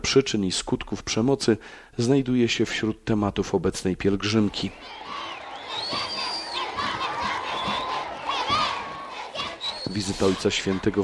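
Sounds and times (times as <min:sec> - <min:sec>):
speech: 0:00.1 - 0:05.0, 0:09.9 - 0:11.0
crowd of children cheering: 0:04.6 - 0:11.0.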